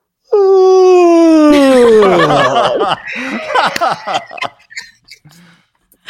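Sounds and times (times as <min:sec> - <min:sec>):
man imitating a yawn into microphone: 0:00.3 - 0:02.1
laughter: 0:01.5 - 0:05.5.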